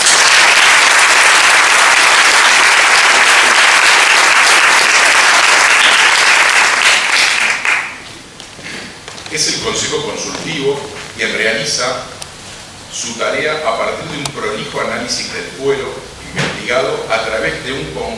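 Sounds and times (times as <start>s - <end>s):
audience applause: 0.0s - 8.0s
speech: 9.6s - 12.1s, 13.0s - 18.1s.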